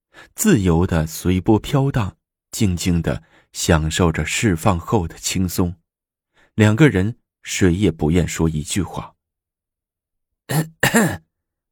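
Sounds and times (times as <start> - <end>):
speech: 0.4 - 5.8, 6.6 - 9.2, 10.5 - 11.3
person coughing from the outer room: 10.5 - 11.3.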